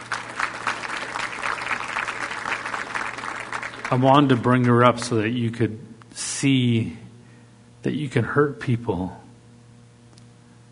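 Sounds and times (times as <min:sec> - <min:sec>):
audience applause: 0:00.0 - 0:04.5
speech: 0:03.9 - 0:07.1, 0:07.8 - 0:09.2.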